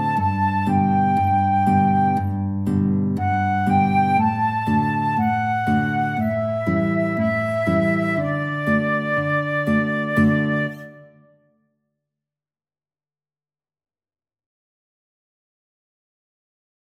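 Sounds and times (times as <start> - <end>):
guitar and flute duet: 0.0 - 11.5.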